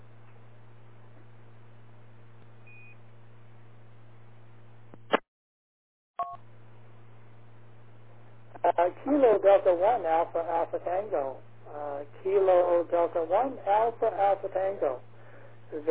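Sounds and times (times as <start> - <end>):
radio channel noise hiss: 8.5 - 15.1
speech: 8.8 - 15.1.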